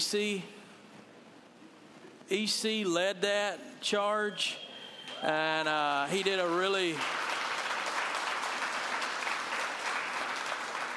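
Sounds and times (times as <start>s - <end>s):
speech: 0.0s - 0.6s, 2.3s - 4.6s, 5.2s - 7.2s
church congregation clapping for a man who led the week's activities: 5.0s - 10.9s.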